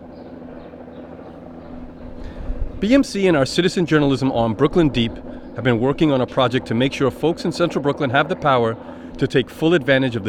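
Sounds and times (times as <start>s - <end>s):
NYPD police helicopter droning overhead: 0.0s - 10.2s
speech: 2.8s - 10.2s.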